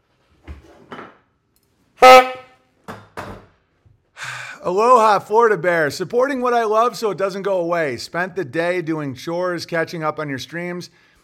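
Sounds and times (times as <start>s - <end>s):
loud brassy horn blast: 2.0s - 2.6s
speech: 4.6s - 11.1s.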